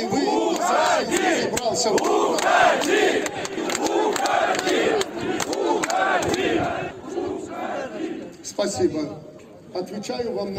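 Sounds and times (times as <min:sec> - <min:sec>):
crowd of protesting workers shouting and chanting: 0:00.0 - 0:08.6
speech: 0:01.8 - 0:03.0, 0:08.7 - 0:10.5.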